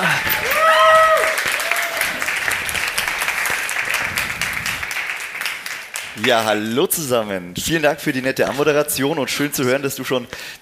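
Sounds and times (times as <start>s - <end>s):
applause: 0.0s - 6.7s
speech: 6.3s - 10.6s.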